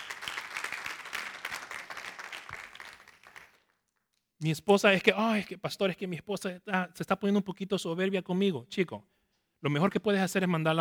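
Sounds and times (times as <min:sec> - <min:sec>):
audience applause: 0:00.0 - 0:03.6
speech: 0:04.4 - 0:10.8.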